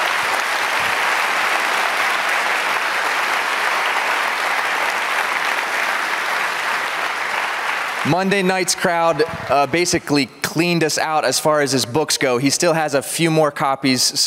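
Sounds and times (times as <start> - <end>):
sustained applause from a large audience: 0.0 - 9.9
speech: 8.1 - 14.2.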